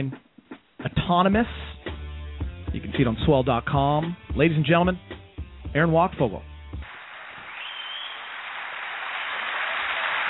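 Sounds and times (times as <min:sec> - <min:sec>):
speech: 0:00.0 - 0:00.2, 0:01.1 - 0:01.7, 0:02.9 - 0:05.1, 0:05.7 - 0:06.5
studio audience applause: 0:06.8 - 0:10.2.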